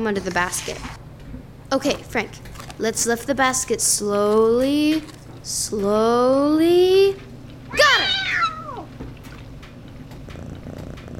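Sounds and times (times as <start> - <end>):
speech: 0.0 - 1.0, 1.7 - 7.9
cat meowing: 7.7 - 8.9
cat purring: 9.8 - 11.1.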